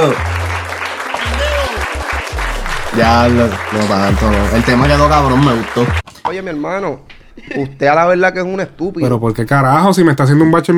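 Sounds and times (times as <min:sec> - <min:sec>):
speech: 0:00.0 - 0:00.3, 0:03.0 - 0:10.7
applause: 0:00.0 - 0:06.0.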